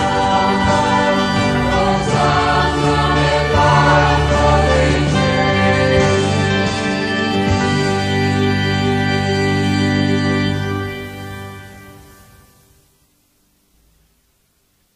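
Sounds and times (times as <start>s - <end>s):
four-voice sacred choir singing: 0.0s - 11.7s.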